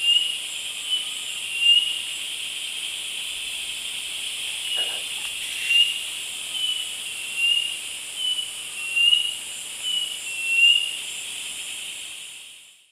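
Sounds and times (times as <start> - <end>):
Laniocera hypopyrra singing in South American Eastern Lowlands: 0.0 - 2.0, 4.5 - 11.0.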